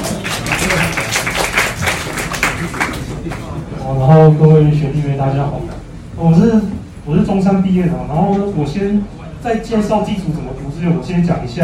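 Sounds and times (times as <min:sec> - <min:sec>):
audience applause: 0:00.0 - 0:03.4
speech: 0:04.0 - 0:11.6.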